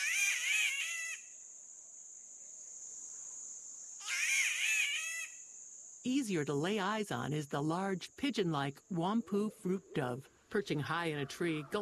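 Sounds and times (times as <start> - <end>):
spotted catbird giving harsh cat-like wails: 0.0 - 1.3, 4.0 - 5.4
steady high-pitched insect drone: 0.0 - 11.8
speech: 6.0 - 11.8.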